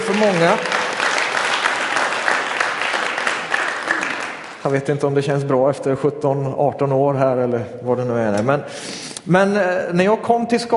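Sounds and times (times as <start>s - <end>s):
audience applause: 0.0s - 4.8s
speech: 0.1s - 0.7s, 4.6s - 10.7s.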